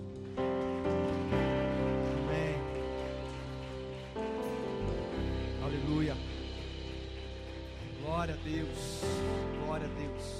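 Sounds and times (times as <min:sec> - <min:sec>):
audience applauding: 0:00.0 - 0:10.3
speech: 0:08.4 - 0:09.2.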